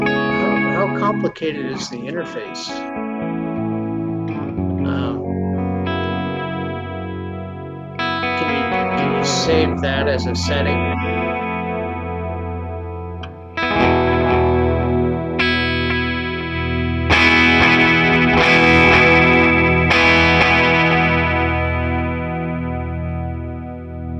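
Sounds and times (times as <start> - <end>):
electric guitar chords through a Suhr Discovery analog delay pedal: 0.0 - 24.1
speech: 1.1 - 3.1, 9.3 - 11.2.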